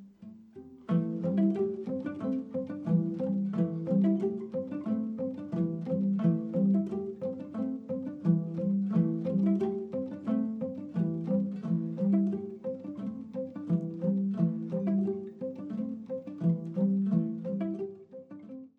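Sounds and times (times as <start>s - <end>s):
Cuban rumba music: 0.9s - 17.9s.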